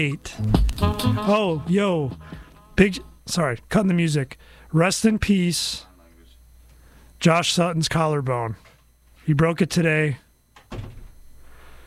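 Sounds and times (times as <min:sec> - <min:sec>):
speech: 0:00.0 - 0:05.9, 0:07.2 - 0:08.7, 0:09.3 - 0:10.9
low steady hum: 0:00.0 - 0:11.8
door closing: 0:10.6 - 0:11.2.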